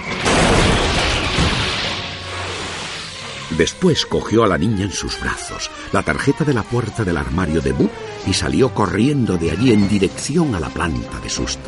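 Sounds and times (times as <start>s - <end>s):
machine being smashed to pieces: 0.0s - 2.8s
speech: 3.6s - 11.6s.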